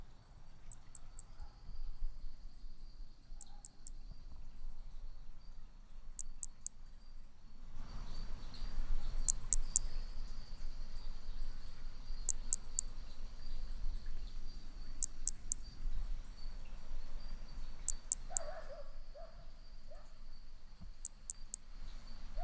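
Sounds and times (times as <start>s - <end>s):
faint hiss: 0.0s - 22.4s
Hermogenes's flea-toad calls: 0.6s - 1.3s, 3.3s - 4.4s, 6.1s - 6.8s, 7.8s - 16.7s, 17.3s - 22.4s.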